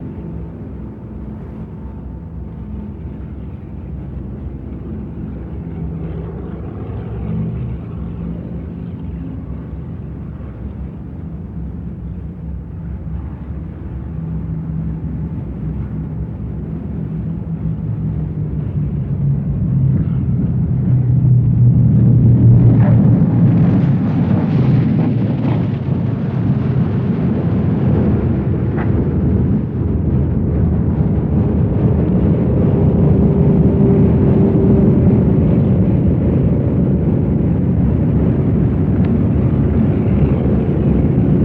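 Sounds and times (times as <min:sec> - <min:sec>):
B-29 bomber landing at medium distance: 0:00.0 - 0:41.4.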